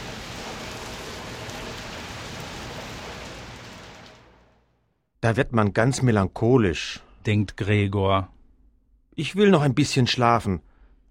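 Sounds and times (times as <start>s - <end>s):
rain falling: 0.0s - 4.7s
speech: 5.2s - 8.4s, 9.2s - 11.0s.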